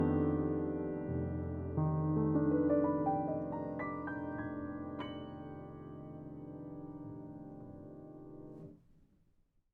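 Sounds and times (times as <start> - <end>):
piano recorded with FET microphone: 0.0 - 9.0.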